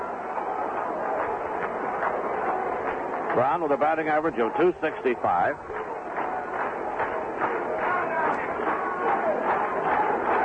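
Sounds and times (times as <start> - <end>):
ballpark crowd clapping in unison: 0.0 - 10.4
speech: 3.4 - 5.9.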